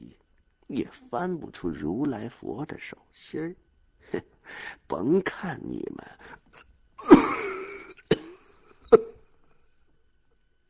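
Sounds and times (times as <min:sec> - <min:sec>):
speech: 0:00.7 - 0:07.5, 0:08.9 - 0:09.1
violent coughing fit: 0:06.5 - 0:09.4.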